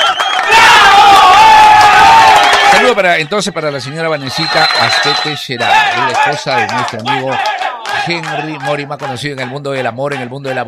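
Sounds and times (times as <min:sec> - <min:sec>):
crowd cheering and whooping: 0:00.0 - 0:02.9, 0:04.3 - 0:08.6
excited high voices shouting together: 0:00.4 - 0:02.9, 0:05.6 - 0:09.2
speech: 0:02.9 - 0:10.6.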